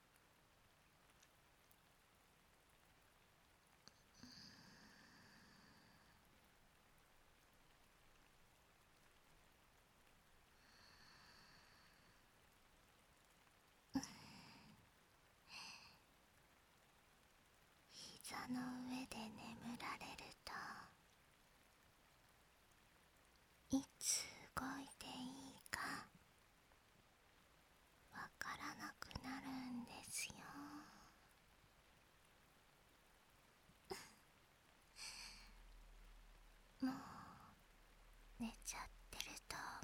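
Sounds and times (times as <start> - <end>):
rain: 0.0 - 39.8
breathing: 10.6 - 12.3.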